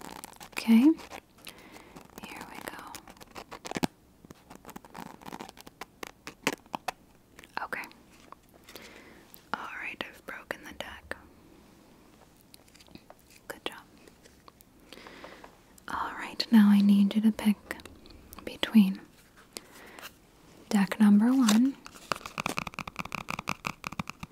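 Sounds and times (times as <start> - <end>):
fingernails scratching along a deck of playing cards: 0.0 - 7.0, 21.2 - 24.2
speech: 0.6 - 1.2, 17.2 - 17.6
person whispering: 2.2 - 3.0, 7.6 - 8.0, 9.5 - 11.3, 13.5 - 13.9, 15.8 - 19.1.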